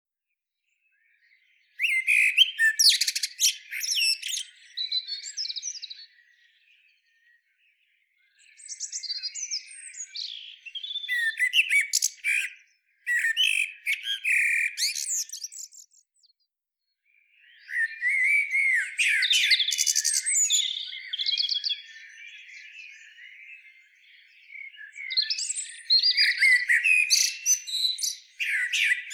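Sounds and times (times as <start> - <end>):
Common blackbird song: 0.5 - 29.1.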